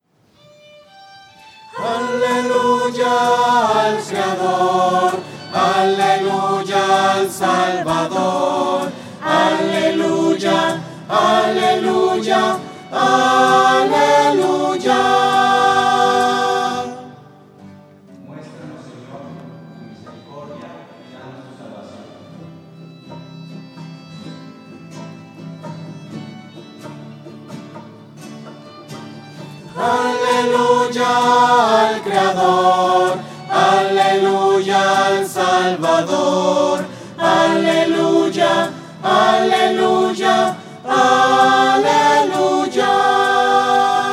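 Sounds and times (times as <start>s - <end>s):
voices singing hallelujah to the creator: 1.7s - 17.4s, 29.7s - 44.1s.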